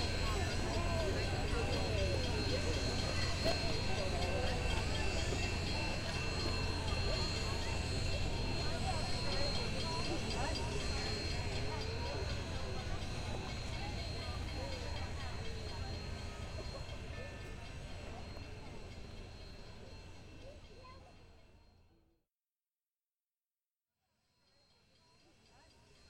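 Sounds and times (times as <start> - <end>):
Union Pacific No. 844 idling in Pacific, Missouri: 0.0 - 19.2
busy crowd of voices: 0.0 - 21.5.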